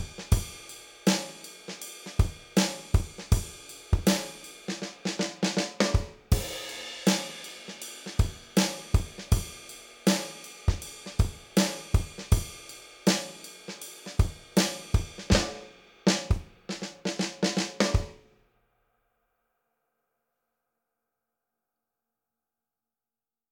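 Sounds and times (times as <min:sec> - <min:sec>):
Motown-style drum kit: 0:00.0 - 0:18.2.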